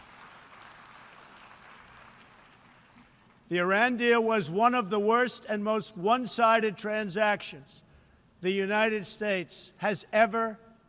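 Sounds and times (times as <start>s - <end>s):
audience applause: 0.0s - 3.1s
speech: 3.5s - 7.8s, 8.4s - 10.6s.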